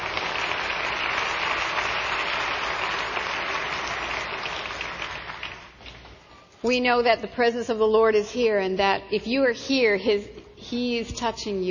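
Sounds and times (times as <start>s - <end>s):
church congregation applauding visitors: 0.0s - 5.8s
speech: 6.7s - 11.6s.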